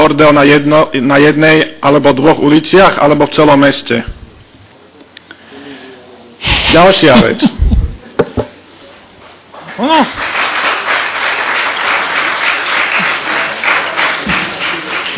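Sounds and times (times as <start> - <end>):
speech: 0.1 - 4.2, 6.4 - 7.6, 9.8 - 10.4
audience clapping: 9.5 - 15.1.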